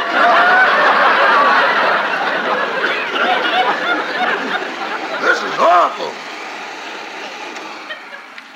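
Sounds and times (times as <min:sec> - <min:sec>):
laughter: 0:00.0 - 0:08.5
vacuum cleaner running: 0:00.0 - 0:08.5
faint clicks: 0:08.3 - 0:08.5.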